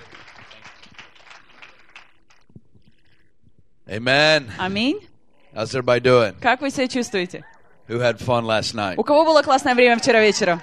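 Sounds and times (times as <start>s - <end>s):
audience applause welcoming a speaker onto the stage: 0.0s - 2.5s, 9.4s - 10.6s
speech: 3.9s - 10.6s.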